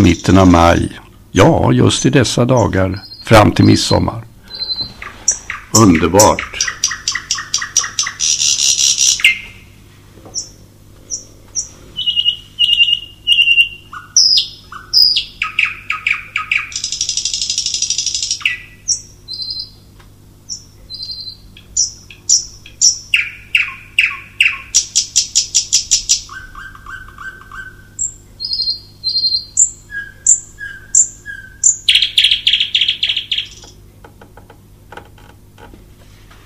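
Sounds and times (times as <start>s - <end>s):
nightingale singing: 0.0s - 0.7s, 2.0s - 33.8s
speech: 0.0s - 4.3s, 5.8s - 6.8s.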